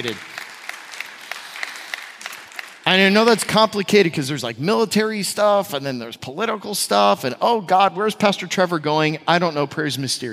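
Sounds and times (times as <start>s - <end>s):
speech: 0.0s - 0.3s, 2.9s - 10.3s
audience clapping: 0.0s - 3.7s.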